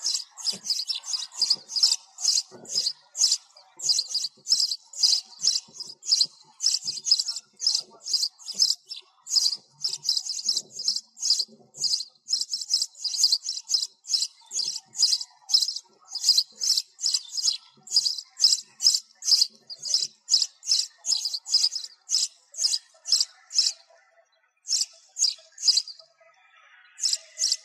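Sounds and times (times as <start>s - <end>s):
sparrows chirping: 0.0s - 26.1s, 26.8s - 27.6s.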